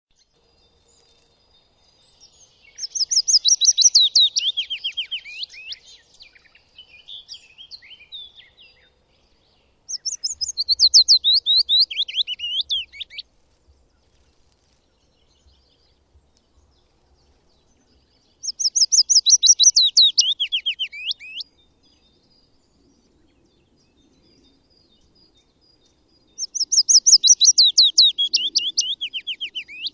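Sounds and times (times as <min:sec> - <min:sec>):
bird whistled song: 0:01.8 - 0:08.9, 0:09.9 - 0:13.2, 0:17.5 - 0:29.9.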